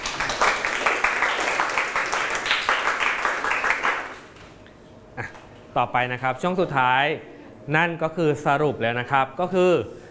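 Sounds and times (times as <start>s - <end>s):
classroom applause: 0.0s - 4.5s
speech: 5.8s - 10.0s.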